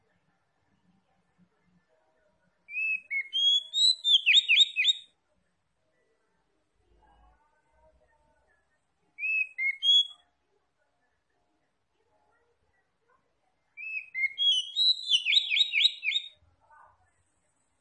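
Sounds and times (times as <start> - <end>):
Oriental magpie-robin whistled notes: 2.7 - 5.0, 9.2 - 10.1, 13.8 - 16.3.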